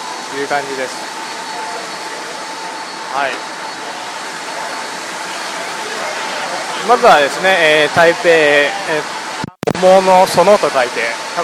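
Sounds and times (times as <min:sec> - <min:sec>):
noisy street at a bus stop: 0:00.0 - 0:11.4
speech: 0:00.3 - 0:01.1, 0:03.1 - 0:03.6, 0:06.8 - 0:09.2, 0:09.8 - 0:11.4.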